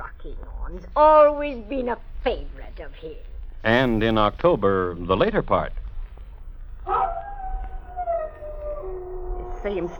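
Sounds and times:
speech: 0.2s - 5.8s, 9.6s - 9.9s
dog howling: 6.8s - 9.9s.

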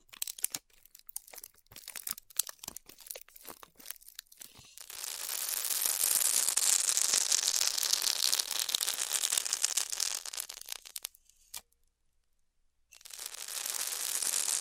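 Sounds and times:
styrofoam crackling while cut with a heated tool: 0.3s - 11.2s, 12.9s - 14.6s
bright hiss of heated tool cutting styrofoam: 13.0s - 14.6s.

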